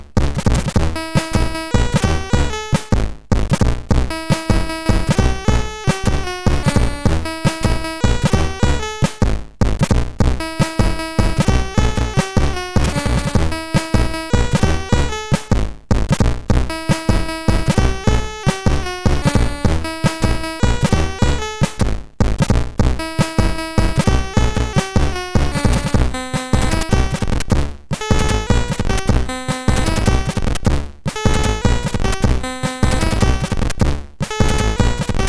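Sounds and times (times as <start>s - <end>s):
MOS6581R3 chiptune music: 0.2s - 35.2s.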